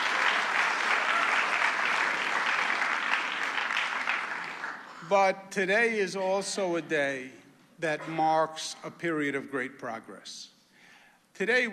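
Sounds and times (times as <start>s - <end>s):
round of applause: 0.0s - 5.1s
speech: 5.1s - 10.5s, 11.4s - 11.7s.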